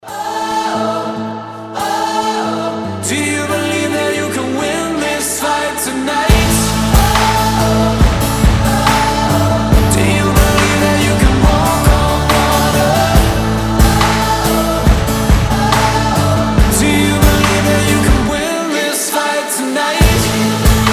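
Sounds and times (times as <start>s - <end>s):
acoustic music: 0.0s - 18.8s, 20.0s - 20.9s.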